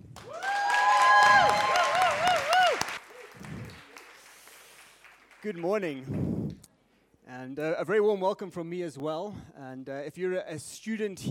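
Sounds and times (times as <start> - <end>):
audience applause: 0.0 - 6.1
speech: 5.4 - 6.6, 7.4 - 11.2.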